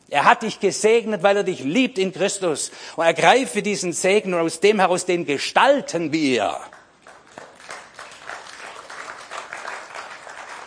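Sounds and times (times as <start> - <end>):
speech: 0.1 - 6.8
modest audience applause: 7.0 - 10.6.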